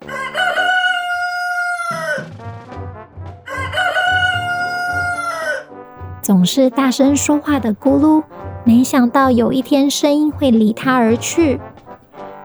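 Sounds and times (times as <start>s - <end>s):
rooster crowing: 0.0s - 2.4s, 3.5s - 5.7s
speech: 6.4s - 11.7s.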